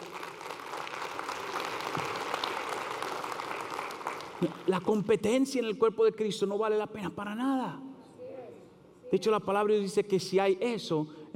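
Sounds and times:
audience applauding: 0.0s - 4.9s
speech: 4.4s - 7.8s, 9.1s - 11.3s.

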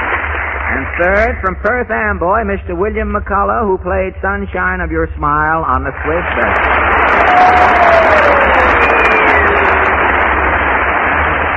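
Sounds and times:
audience applause and cheering: 0.0s - 0.8s, 6.1s - 11.5s
speech: 0.8s - 8.9s.

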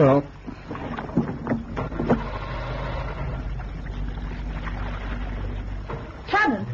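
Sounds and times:
wind and water rumble around the boat: 0.0s - 6.7s
outboard motor failing to start: 0.1s - 6.7s.

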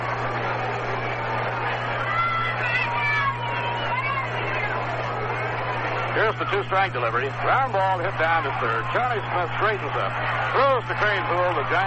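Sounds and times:
baseball stadium crowd roar of chatter: 0.0s - 11.8s
low constant hum: 0.0s - 11.8s
speech: 6.2s - 11.8s.

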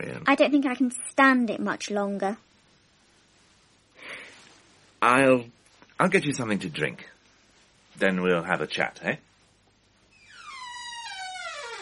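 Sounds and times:
speech: 0.0s - 2.5s, 5.0s - 7.1s, 8.0s - 9.3s
door hinges creaking: 10.1s - 11.8s.

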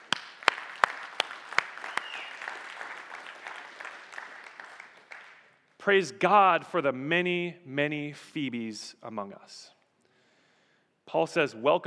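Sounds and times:
audience applause: 0.0s - 5.5s
speech: 5.8s - 9.8s, 11.1s - 11.8s.

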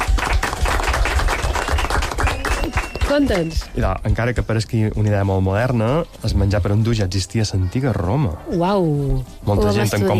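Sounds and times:
applause: 0.0s - 3.8s
speech: 3.1s - 10.1s.

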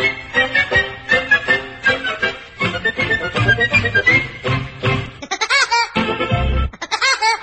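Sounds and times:
bouncy novelty song: 0.0s - 7.4s
cartoon woodpecker laugh: 5.2s - 6.0s, 6.8s - 7.4s.

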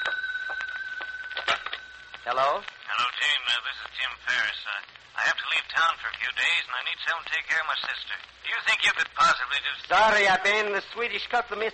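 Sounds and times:
telephone ringing with a warbling electronic trill: 0.0s - 2.7s
speech: 2.3s - 11.7s.

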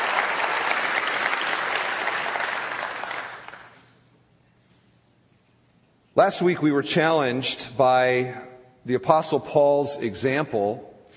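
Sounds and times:
church congregation at Bethel Church applauding visiting guests: 0.0s - 4.0s
speech: 6.2s - 10.9s.

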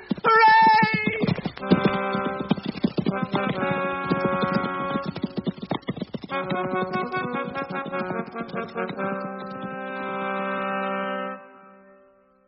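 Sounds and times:
horses galloping: 0.0s - 10.9s
music: 1.6s - 12.4s.

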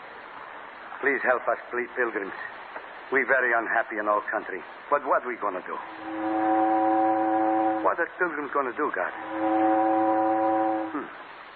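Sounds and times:
speech: 1.0s - 6.4s, 7.8s - 9.9s, 10.9s - 11.3s
steamboat whistle: 5.8s - 7.9s, 9.1s - 11.1s.

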